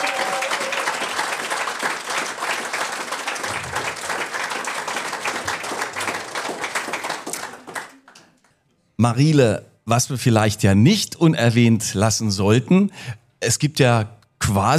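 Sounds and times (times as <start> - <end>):
audience applauding: 0.0 - 8.5
speech: 9.0 - 14.7.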